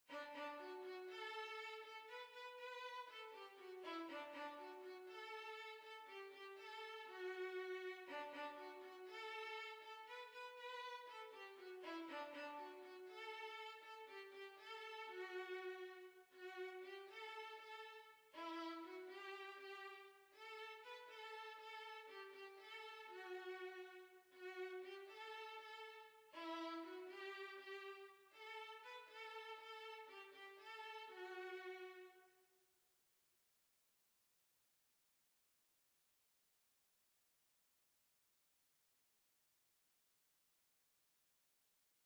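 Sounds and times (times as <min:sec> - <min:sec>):
violin: 0:00.1 - 0:32.3.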